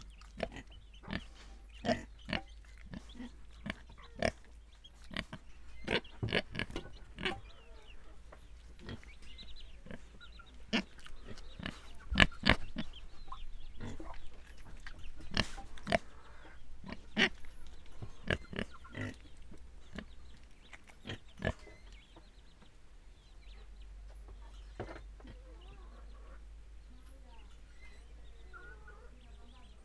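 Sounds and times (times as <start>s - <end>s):
pigs grunting and snuffling: 0.0s - 7.5s, 9.8s - 13.0s, 13.8s - 21.8s.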